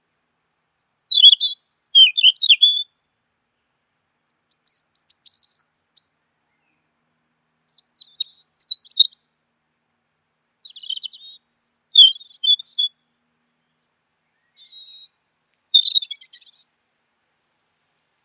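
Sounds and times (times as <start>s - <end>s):
bird song with twittering and chirps: 0.4s - 2.8s, 4.3s - 6.2s, 7.7s - 9.2s, 10.3s - 13.0s, 14.2s - 16.7s.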